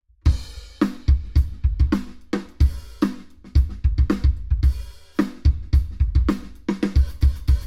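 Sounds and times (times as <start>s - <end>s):
drums recorded binaurally: 0.1s - 7.6s.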